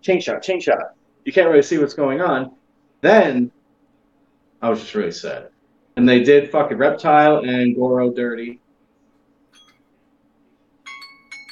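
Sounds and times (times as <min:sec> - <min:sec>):
speech: 0:00.0 - 0:03.6, 0:04.6 - 0:08.6
dainty chiming alarm: 0:09.6 - 0:09.8, 0:10.9 - 0:11.4.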